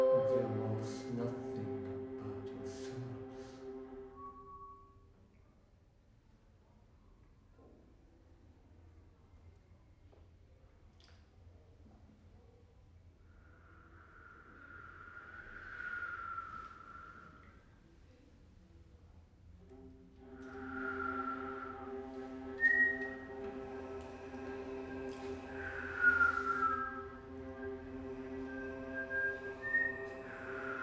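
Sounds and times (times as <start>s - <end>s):
sextet playing: 0.2s - 4.5s, 20.2s - 30.6s.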